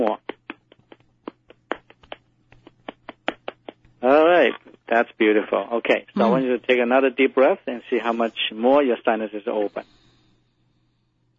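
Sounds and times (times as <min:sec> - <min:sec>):
speech: 0:00.0 - 0:00.2, 0:05.0 - 0:10.0
low steady hum: 0:00.0 - 0:11.3
hands patting down an arm from shoulder to wrist in self-massage: 0:00.2 - 0:04.0.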